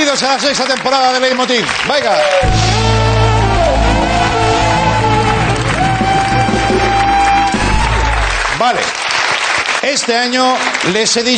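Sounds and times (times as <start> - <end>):
audience applause: 0.0 - 11.3
cheering: 0.0 - 11.3
speech: 0.1 - 3.4, 8.6 - 9.0, 9.8 - 11.3
tonal hum: 2.4 - 8.6.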